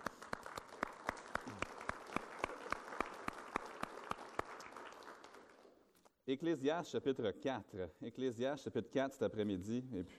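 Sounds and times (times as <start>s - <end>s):
audience applause: 0.0s - 5.8s
speech: 6.3s - 10.1s.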